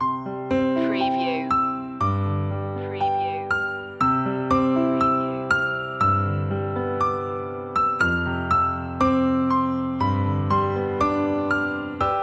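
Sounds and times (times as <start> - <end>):
Christmas carol piano loop: 0.0 - 12.2.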